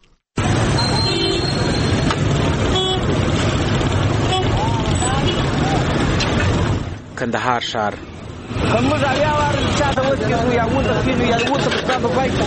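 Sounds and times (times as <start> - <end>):
rumble of congested traffic engines in Kandahar city: 0.4 - 12.4
car horn toots in Kandahar city traffic: 0.8 - 2.1, 2.7 - 3.1, 4.2 - 5.4
speech: 7.2 - 12.4.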